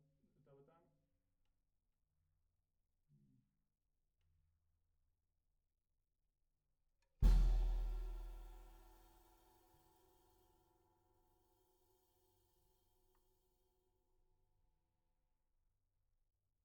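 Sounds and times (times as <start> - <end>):
snare drum recorded from the bottom: 7.2 - 9.4.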